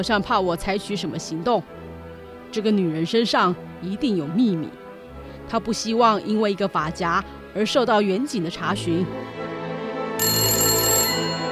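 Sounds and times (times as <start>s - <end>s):
speech: 0.0s - 1.8s, 2.5s - 4.8s, 5.5s - 9.6s
desk telephone ringing: 10.2s - 11.4s.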